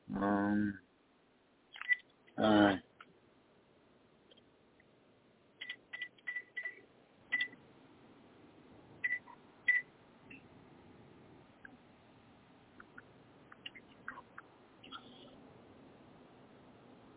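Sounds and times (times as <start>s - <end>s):
low hum: 0.0s - 17.1s
speech: 0.1s - 0.9s, 2.4s - 2.9s
telephone keypad dialing tones: 5.6s - 7.6s.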